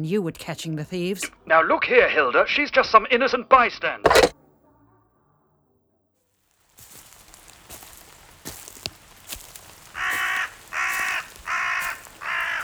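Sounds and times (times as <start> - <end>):
speech: 0.0 - 4.3
soft ticks and taps: 6.8 - 12.6
crow cawing: 7.2 - 12.6.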